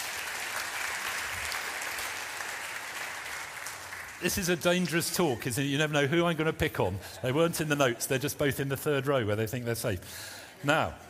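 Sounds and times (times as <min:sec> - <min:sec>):
crowd applauding: 0:00.0 - 0:05.9
speech: 0:04.2 - 0:11.0.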